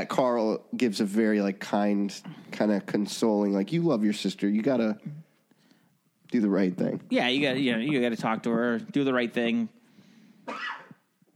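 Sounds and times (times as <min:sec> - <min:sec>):
speech: 0:00.0 - 0:05.2, 0:06.3 - 0:09.8
person coughing: 0:10.5 - 0:11.0.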